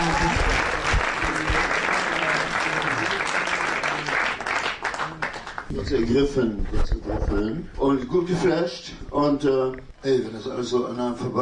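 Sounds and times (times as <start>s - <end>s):
audience applause: 0.0s - 5.7s
speech: 5.8s - 11.4s.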